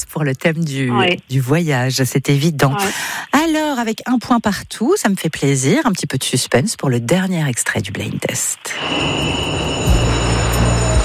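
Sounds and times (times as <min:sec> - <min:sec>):
speech: 0:00.0 - 0:10.0
thin high whine: 0:08.7 - 0:11.0
low humming drone: 0:08.8 - 0:11.0
train rumbling at a station platform: 0:08.8 - 0:11.0.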